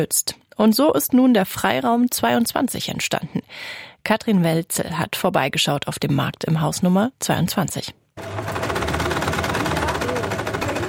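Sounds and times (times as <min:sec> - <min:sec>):
speech: 0:00.0 - 0:08.0
several sewing machines running: 0:08.2 - 0:10.8.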